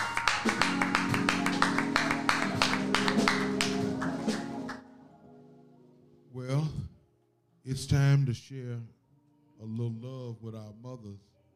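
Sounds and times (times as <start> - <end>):
audience clapping hands in praise: 0.0 - 4.9
speech: 7.7 - 9.0, 9.6 - 11.3.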